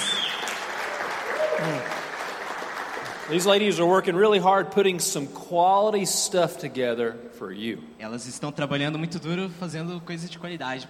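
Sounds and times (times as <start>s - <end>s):
audience applause: 0.0s - 3.8s
speech: 3.3s - 10.8s.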